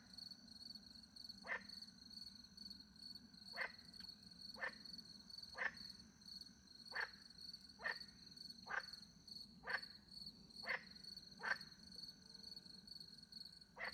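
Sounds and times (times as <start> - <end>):
cricket chorus: 0.0 - 13.9
frog croaking: 1.4 - 1.8, 3.5 - 3.8, 4.6 - 4.9, 5.5 - 5.9, 6.9 - 7.2, 7.8 - 9.0, 9.6 - 9.9, 10.6 - 11.7, 13.8 - 13.9.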